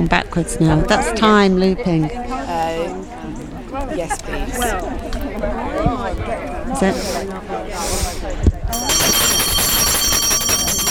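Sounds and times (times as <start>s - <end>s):
speech: 0.0s - 2.3s, 4.0s - 8.1s
bell: 8.8s - 10.8s.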